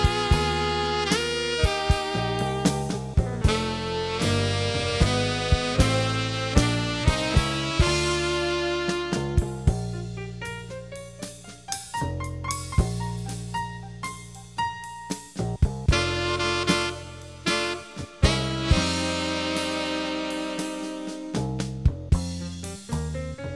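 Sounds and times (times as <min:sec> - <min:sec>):
slow rhythm intermediate modern music: 0:00.0 - 0:23.5.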